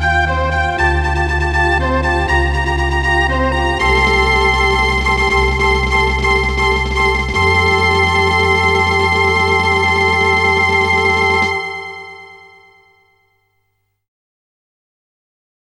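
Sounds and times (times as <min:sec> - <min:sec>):
fanfare: 0:00.2 - 0:13.0.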